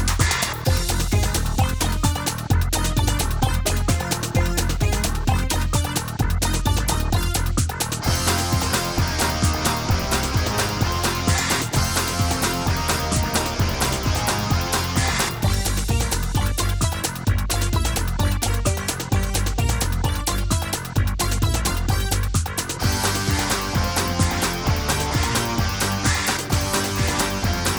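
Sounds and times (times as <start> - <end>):
instrumental theme music: 0.2 - 27.7.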